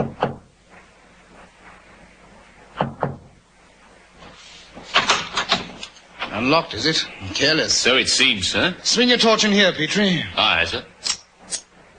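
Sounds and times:
discreet knocking on a cabin door: 2.8 - 3.3
speech: 6.4 - 10.9.

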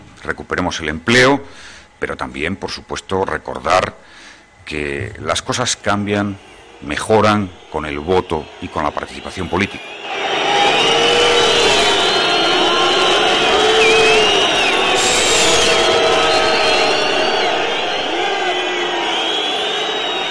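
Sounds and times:
speech: 0.2 - 10.2
crowd booing: 7.6 - 20.3.

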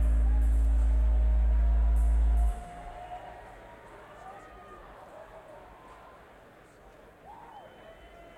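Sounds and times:
set intro music: 0.0 - 3.5.

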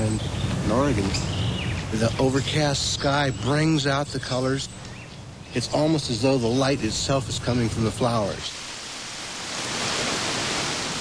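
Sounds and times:
speech: 0.2 - 4.8, 5.5 - 8.6
Oregon spring water flowing out of and into lava rock: 8.2 - 10.9.

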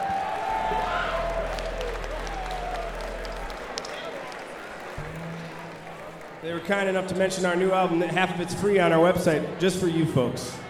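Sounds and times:
audience round of applause: 0.0 - 7.1
speech: 6.5 - 10.6.

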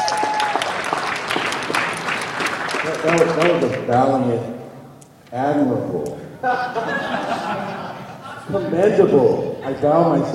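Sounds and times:
audience applause: 0.0 - 4.0
speech: 3.0 - 4.6, 5.3 - 7.8, 8.5 - 10.3
laughter: 6.4 - 9.0.

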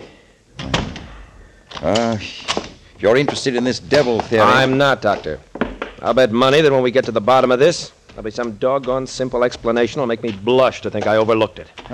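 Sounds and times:
door being shut: 0.6 - 1.3
speech: 1.8 - 11.9.

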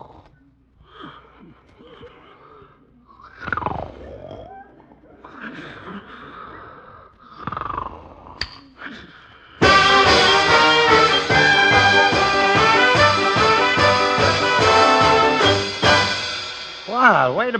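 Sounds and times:
brassy band music blaring from a clock radio alarm: 9.6 - 17.0.

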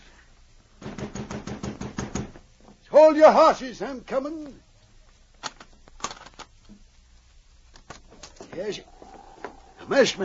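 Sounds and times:
pounding on a door: 0.8 - 2.4
speech: 3.0 - 4.6, 8.6 - 8.9, 9.9 - 10.2.

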